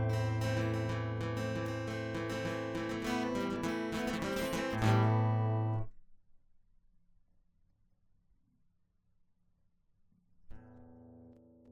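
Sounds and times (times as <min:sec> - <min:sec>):
guitar solo: 0:00.0 - 0:05.8.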